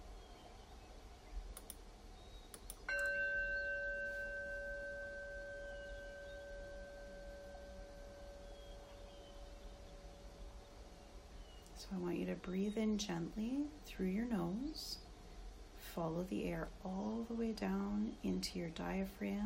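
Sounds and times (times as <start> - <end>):
meditation bell: 2.9 - 10.5
speech: 11.9 - 15.0, 16.0 - 19.4.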